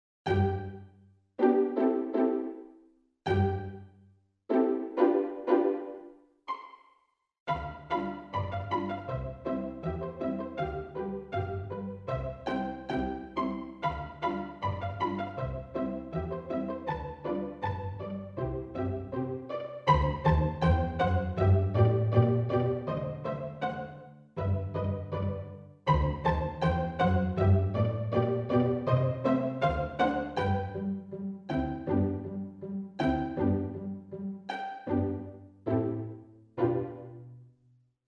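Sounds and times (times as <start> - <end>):
pizzicato strings: 0.3 - 0.8, 1.4 - 2.7, 3.3 - 3.8, 4.5 - 6.8, 7.5 - 37.3.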